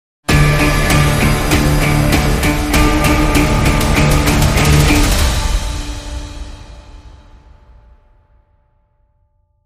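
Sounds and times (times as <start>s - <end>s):
short crime music sting: 0.3s - 7.9s.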